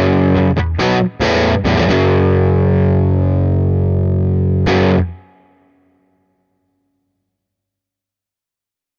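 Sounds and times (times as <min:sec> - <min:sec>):
Epiphone Les Paul electric guitar through power amp at low volume: 0:00.0 - 0:05.8.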